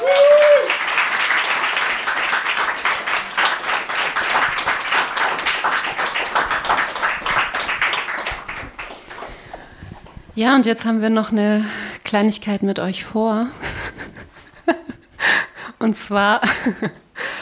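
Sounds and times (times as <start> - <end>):
dense audience applause: 0.0 - 10.1
speech: 10.4 - 13.8, 15.8 - 17.0.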